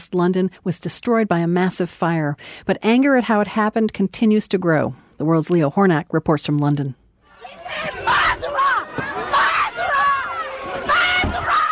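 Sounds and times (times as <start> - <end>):
speech: 0.0 - 8.4
angry residents shouting at the prime minister at the Grenfell Tower site in West London: 7.3 - 11.6.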